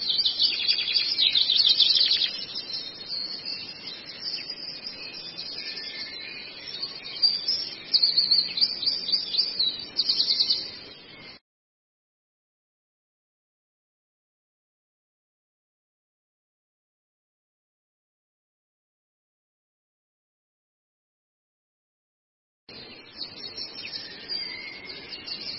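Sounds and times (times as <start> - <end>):
Long-tailed shrike twittering song: 0.0 - 11.4, 22.7 - 25.5.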